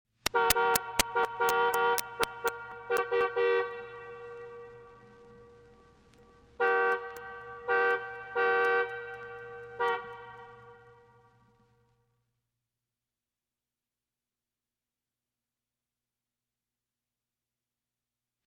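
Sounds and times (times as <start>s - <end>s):
car horn: 0.3s - 11.9s.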